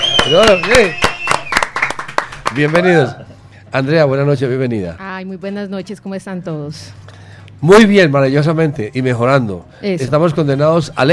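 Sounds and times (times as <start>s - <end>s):
applause from people in the studio: 0.0s - 2.9s
speech: 0.3s - 1.0s, 2.5s - 7.0s, 7.6s - 11.1s.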